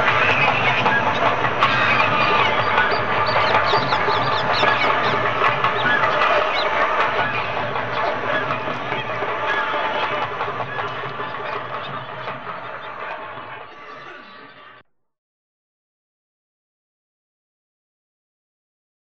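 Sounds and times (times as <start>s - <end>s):
birds in India or Nepal: 0.0s - 14.8s
drums in India or Nepal: 0.0s - 14.8s.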